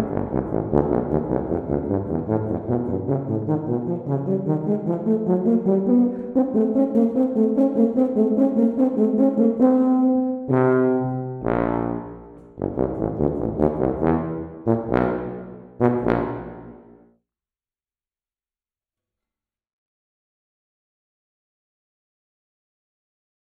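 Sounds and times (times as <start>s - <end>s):
tuba playing a study: 0.0s - 17.1s.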